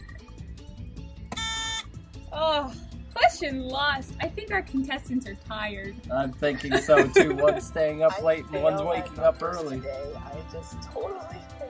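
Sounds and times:
laughter: 0.0 - 5.3
soft music: 0.0 - 11.6
game show buzzer: 1.3 - 1.9
speech: 2.4 - 2.8, 3.4 - 11.6.

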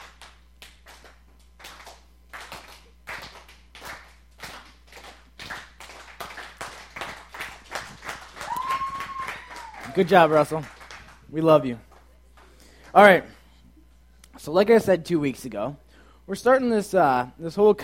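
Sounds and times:
slow clap: 0.0 - 11.3
speech: 10.0 - 11.9, 12.9 - 13.4, 14.4 - 17.8.

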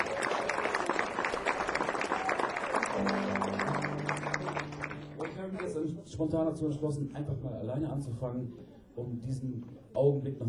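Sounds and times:
audience applause: 0.0 - 6.0
low sustained musical tone: 3.0 - 5.8
speech: 6.0 - 10.4.

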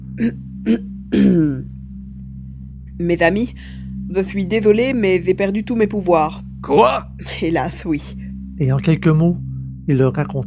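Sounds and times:
man clearing his throat: 0.2 - 1.6
speech: 0.2 - 1.7, 3.0 - 10.4.

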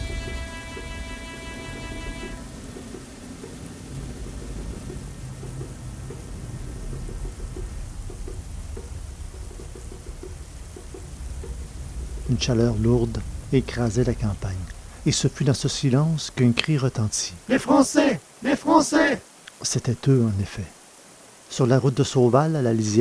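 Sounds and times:
distant violent thunderclaps: 0.0 - 17.8
rain: 0.0 - 23.0
speech: 12.3 - 20.8, 21.5 - 23.0.

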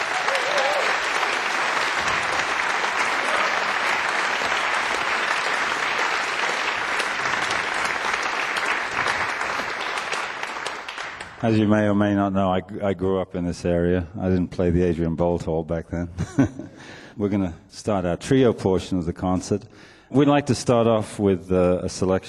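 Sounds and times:
concert audience applauding the performers: 0.0 - 11.5
speech: 11.4 - 22.2.

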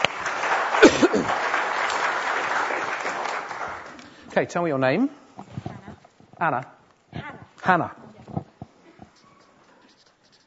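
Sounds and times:
audience clapping: 0.0 - 4.6
speech: 4.4 - 5.6, 6.4 - 6.8, 7.7 - 8.0.

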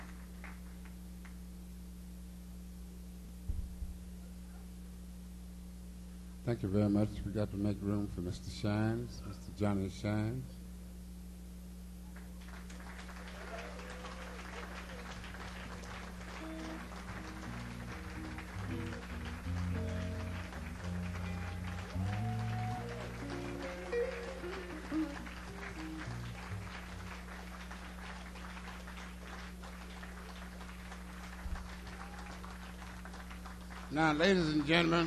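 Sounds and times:
audience applause: 0.0 - 1.0, 12.2 - 35.0
speech: 6.5 - 10.6, 34.2 - 35.0.

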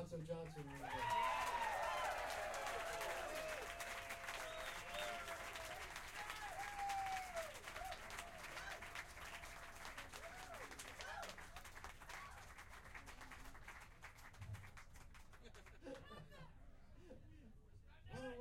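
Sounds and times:
crowd applauding: 0.0 - 16.1
whistles and cheers: 0.8 - 11.4.

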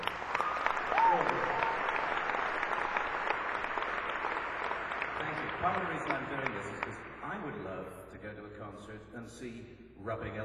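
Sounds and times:
audience applause at a live interactive show: 0.0 - 7.6
person cheering: 0.3 - 2.0
speech: 5.8 - 10.4.

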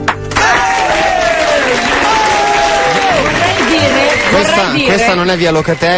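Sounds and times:
audience applause: 0.2 - 5.6
speech: 5.3 - 5.9.

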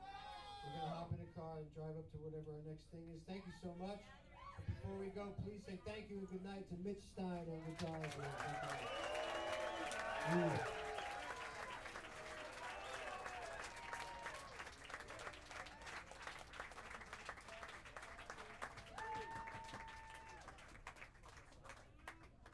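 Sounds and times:
speech: 0.6 - 9.1, 10.2 - 10.8
audience applause: 7.7 - 22.5.

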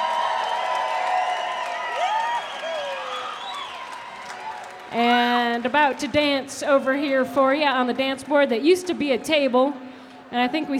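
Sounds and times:
audience clapping to welcome a banjo player on stage: 0.0 - 6.2
audience whoops and whistles: 0.4 - 4.4
speech: 4.9 - 10.7.

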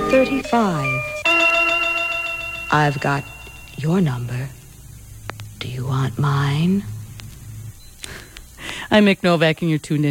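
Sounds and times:
radio time-announcement chime of bell-like electronic tones: 0.0 - 7.0
speech: 0.1 - 1.2, 2.7 - 4.6, 5.6 - 6.9, 8.9 - 10.1.

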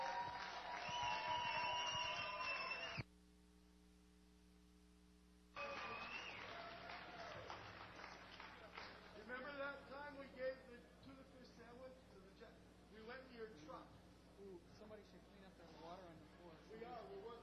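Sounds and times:
loud crowd clapping: 0.0 - 3.0, 5.6 - 9.6
low electrical hum: 0.0 - 17.4.

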